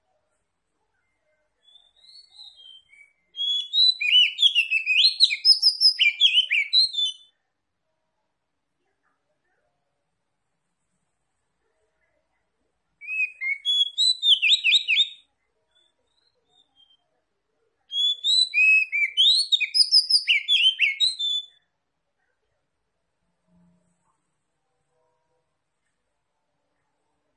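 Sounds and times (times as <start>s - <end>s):
Oriental magpie-robin singing whistles and chirps: 1.6s - 7.3s, 13.0s - 15.2s, 15.8s - 17.0s, 17.9s - 21.6s.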